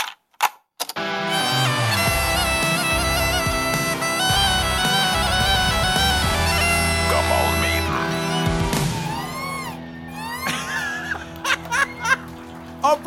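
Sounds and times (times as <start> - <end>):
bagpipe playing drone and melody: 1.0 - 12.0
bright electronic iPhone ringtone tones: 1.3 - 9.8
laughter: 1.3 - 12.8.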